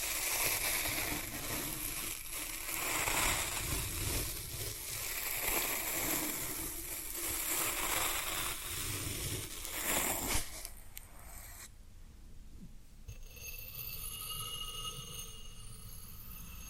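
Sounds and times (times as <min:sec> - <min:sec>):
floral foam being crushed and squeezed: 0:00.0 - 0:10.9
thin high ringing tone: 0:13.1 - 0:16.6.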